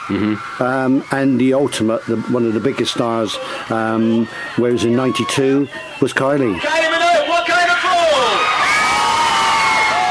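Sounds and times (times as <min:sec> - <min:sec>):
concert crowd cheering wildly: 0:00.0 - 0:10.1
speech: 0:00.1 - 0:06.9.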